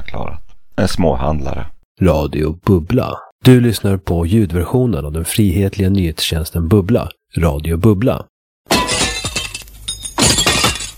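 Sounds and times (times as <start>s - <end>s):
speech: 0.8s - 8.3s
window pane shattering: 8.7s - 10.9s
glass shards tinkling: 8.8s - 10.9s.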